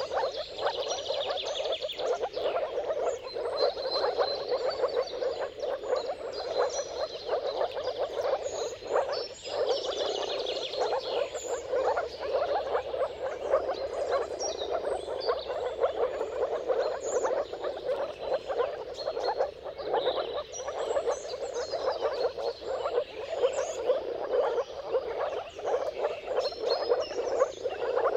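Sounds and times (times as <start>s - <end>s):
bird calls: 0.0s - 28.1s
moor frog chorus: 0.0s - 28.1s.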